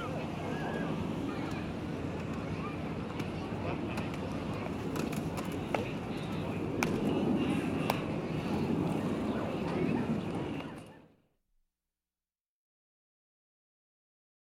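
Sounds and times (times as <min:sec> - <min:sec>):
big city noise: 0:00.0 - 0:11.2
people playing and having fun in a park: 0:00.0 - 0:11.3.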